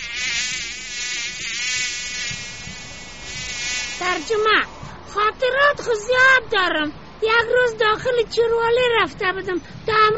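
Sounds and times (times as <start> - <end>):
housefly buzzing: 0.0 - 4.7
speech: 4.2 - 10.1.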